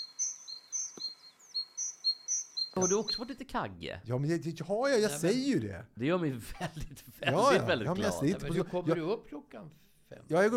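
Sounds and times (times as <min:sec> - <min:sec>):
great tit song: 0:00.0 - 0:03.6
speech: 0:02.8 - 0:10.5
laughter: 0:06.4 - 0:09.1.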